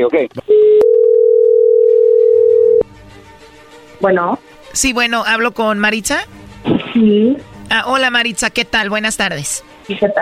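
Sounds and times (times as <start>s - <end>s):
speech: 0.0s - 0.5s, 4.0s - 10.1s
telephone line tone: 0.5s - 2.8s.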